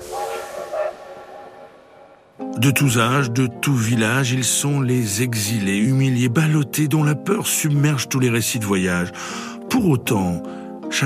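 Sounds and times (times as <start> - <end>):
steam train hissing steam: 0.0 - 2.0
speech: 2.6 - 11.0.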